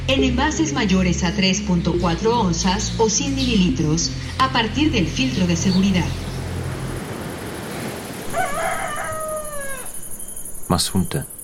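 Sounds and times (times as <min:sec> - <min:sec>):
speech: 0:00.1 - 0:06.3, 0:10.7 - 0:11.3
roosters crowing before sunrise: 0:08.2 - 0:10.3.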